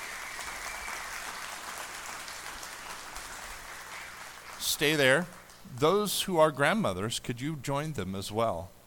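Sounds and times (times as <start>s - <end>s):
audience applause: 0.0s - 5.6s
speech: 4.6s - 8.8s.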